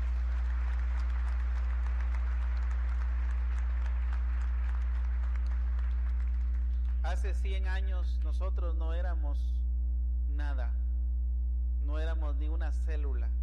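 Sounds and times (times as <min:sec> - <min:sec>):
audience applause: 0:00.0 - 0:07.0
speech: 0:07.2 - 0:09.6, 0:10.3 - 0:10.8, 0:11.8 - 0:13.4.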